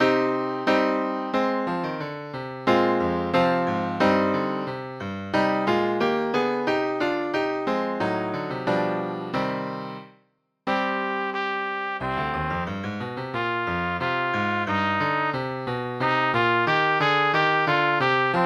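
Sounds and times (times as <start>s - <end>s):
piano: 0.0s - 18.4s
trumpet: 10.7s - 18.4s.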